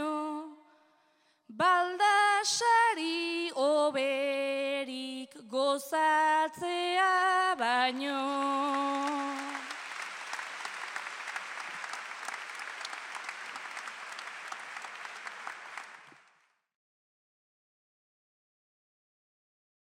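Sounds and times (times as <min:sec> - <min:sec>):
bertsolari singing agurra at Euskal Herriko Eskolarteko Bertsolari Txapelketa: 0:01.5 - 0:09.8.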